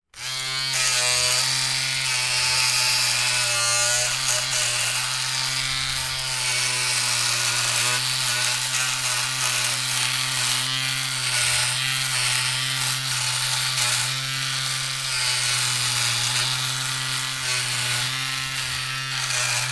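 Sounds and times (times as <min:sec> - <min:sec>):
household electric razor trimming thick stubble: 0:00.1 - 0:19.7.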